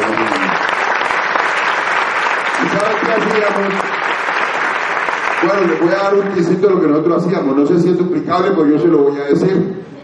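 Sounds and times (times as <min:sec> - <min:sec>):
audience applause: 0:00.0 - 0:06.8
speech: 0:03.2 - 0:03.8, 0:05.4 - 0:09.9.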